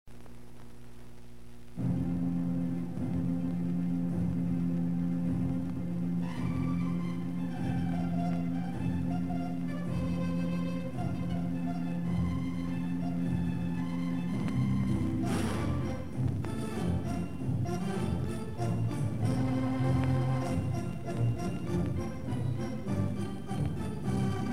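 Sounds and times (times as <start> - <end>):
gigantic pipe organ: 1.7 - 24.5.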